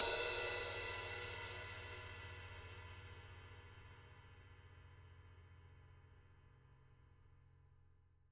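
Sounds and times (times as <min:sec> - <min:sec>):
ride cymbal: 0:00.0 - 0:04.3.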